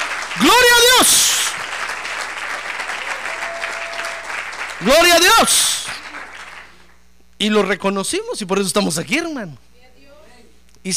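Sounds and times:
audience applause: 0.0s - 7.0s
speech: 0.4s - 1.4s, 4.8s - 5.9s, 7.4s - 9.7s.

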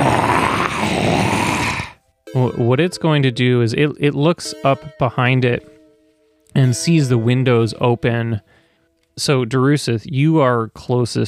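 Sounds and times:
hyena-like creature growling: 0.0s - 2.0s
speech: 2.4s - 5.7s, 6.5s - 8.5s, 9.2s - 11.2s.

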